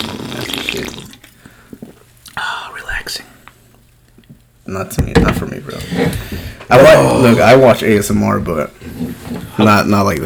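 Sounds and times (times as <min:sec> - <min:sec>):
person slurping a drink: 0:00.0 - 0:01.2
speech: 0:04.7 - 0:10.2.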